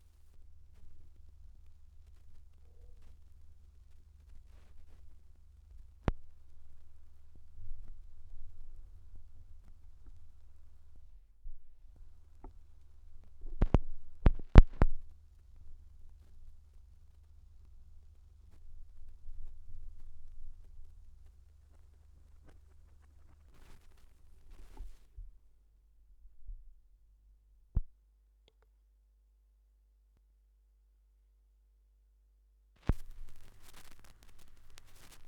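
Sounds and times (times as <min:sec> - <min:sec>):
vinyl record noise: 0:00.0 - 0:11.2, 0:11.8 - 0:25.3, 0:32.8 - 0:35.2.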